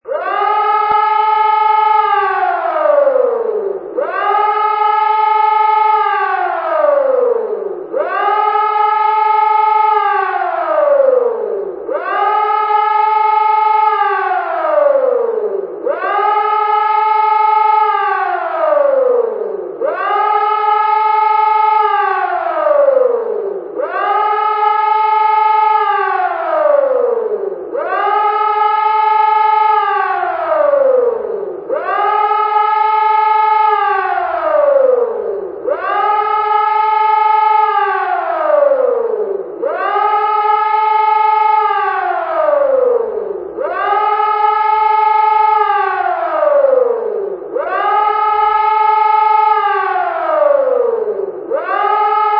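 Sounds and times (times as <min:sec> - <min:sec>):
alarm: 0:00.0 - 0:52.3.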